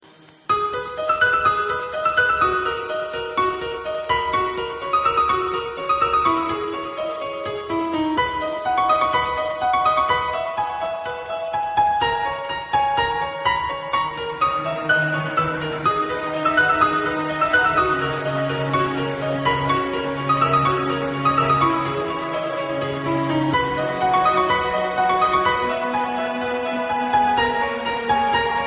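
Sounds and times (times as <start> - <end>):
chillout music: 0.1 - 28.6.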